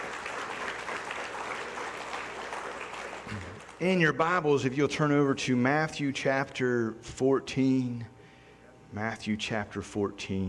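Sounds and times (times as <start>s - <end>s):
crowd applause: 0.0s - 3.8s
speech: 3.3s - 8.1s, 8.9s - 10.4s.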